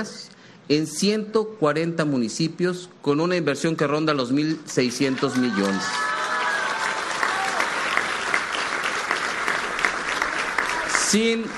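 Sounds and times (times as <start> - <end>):
speech: 0.0 - 6.2, 11.1 - 11.5
audience applause: 4.8 - 11.5.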